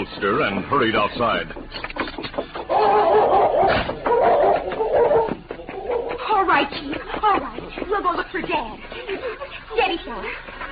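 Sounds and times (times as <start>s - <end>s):
speech: 0.1s - 2.0s, 6.5s - 10.5s
laughter: 1.6s - 10.7s
dog barking and snarling while straining on chain: 2.6s - 7.7s.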